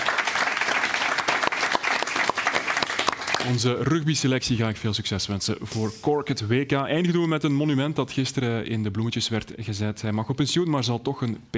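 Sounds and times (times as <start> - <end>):
studio audience applause: 0.0 - 3.8
speech: 3.4 - 11.5.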